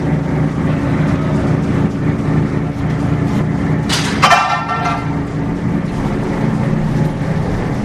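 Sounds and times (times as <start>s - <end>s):
lifeboat engine droning: 0.0s - 7.8s.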